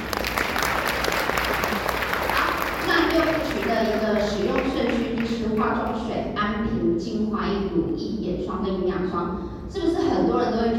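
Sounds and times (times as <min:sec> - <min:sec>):
audience applause: 0:00.0 - 0:04.9
speech: 0:03.8 - 0:10.7.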